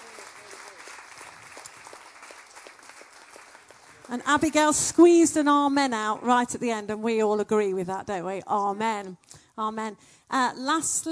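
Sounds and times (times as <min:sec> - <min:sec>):
audience applause: 0:00.0 - 0:04.3
speech: 0:04.1 - 0:11.0.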